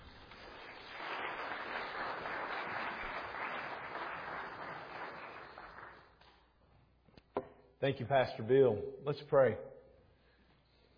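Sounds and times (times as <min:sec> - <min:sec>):
church congregation at Grace Church applauding a guest speaker: 0:00.0 - 0:06.5
speech: 0:07.8 - 0:09.7.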